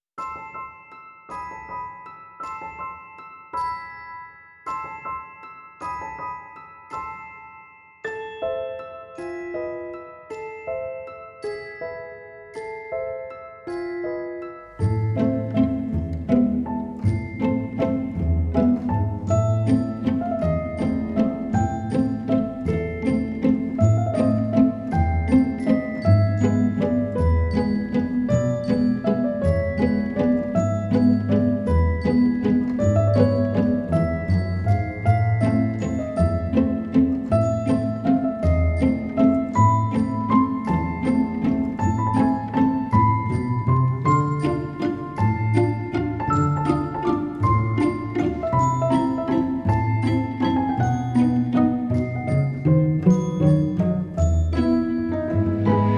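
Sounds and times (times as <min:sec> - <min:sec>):
Italian waltz music: 0:00.2 - 0:55.9.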